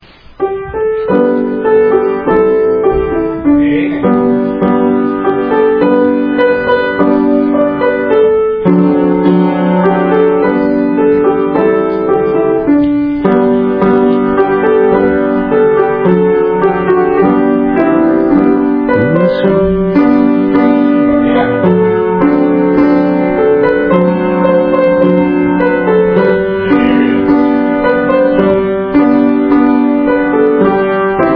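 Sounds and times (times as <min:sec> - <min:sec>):
children playing piano: 0:00.0 - 0:31.3.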